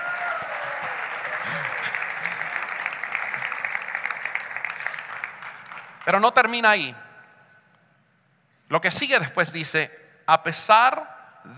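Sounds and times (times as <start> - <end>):
audience applause: 0.0 - 6.1
speech: 6.1 - 7.0, 8.7 - 11.5.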